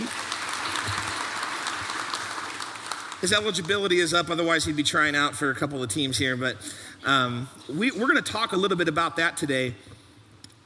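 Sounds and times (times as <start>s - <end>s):
audience applause: 0.0s - 4.2s
speech: 3.2s - 9.9s.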